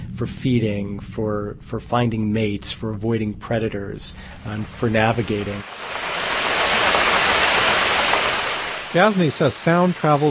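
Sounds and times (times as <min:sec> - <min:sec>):
speech: 0:00.2 - 0:06.0, 0:08.9 - 0:10.2
large ship noise recorded underwater: 0:03.4 - 0:10.2.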